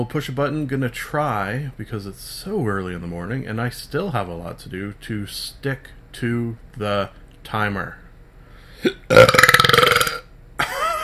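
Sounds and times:
speech: 0.0s - 8.0s, 8.8s - 9.5s
morning coffee burp: 8.8s - 10.3s.

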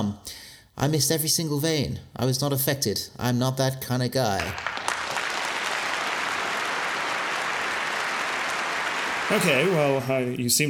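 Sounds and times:
speech: 0.0s - 4.7s, 9.3s - 10.6s
steady audience applause: 4.4s - 10.3s.

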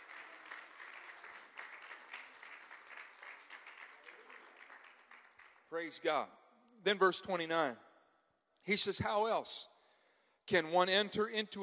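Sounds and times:
audience clapping hands: 0.0s - 6.1s
speech: 5.7s - 7.9s, 8.6s - 9.7s, 10.5s - 11.6s.

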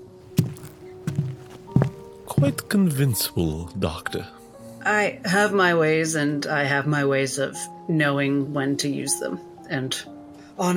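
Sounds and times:
footsteps: 0.0s - 2.8s
speech: 2.4s - 10.7s.

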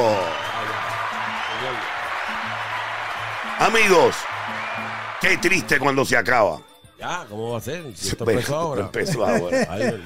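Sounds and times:
applause: 0.0s - 6.1s
speech: 3.6s - 4.3s, 5.2s - 10.0s
laughter: 8.4s - 10.0s.

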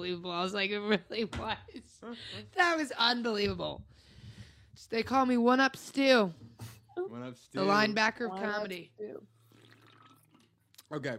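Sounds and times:
speech: 0.1s - 4.1s, 4.8s - 9.4s, 10.9s - 11.1s
person's voice: 7.6s - 9.2s
slurping sip of a drink: 9.3s - 10.5s.

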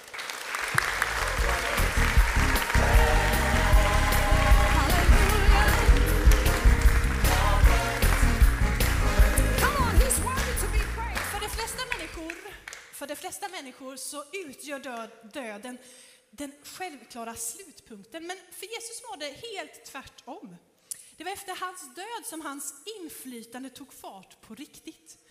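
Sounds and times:
audience applause: 0.0s - 12.8s
speech: 14.2s - 25.2s.

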